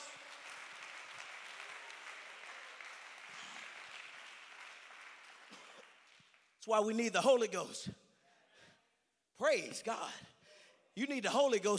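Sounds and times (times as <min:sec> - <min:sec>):
crowd clapping: 0:00.0 - 0:06.6
speech: 0:06.6 - 0:08.0, 0:09.4 - 0:10.4, 0:11.0 - 0:11.7.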